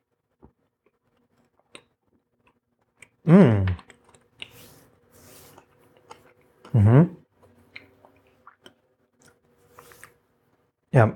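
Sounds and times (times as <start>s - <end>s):
person chewing chocolate: 0.8s - 6.8s, 7.4s - 10.2s
speech: 3.2s - 3.8s, 11.0s - 11.1s.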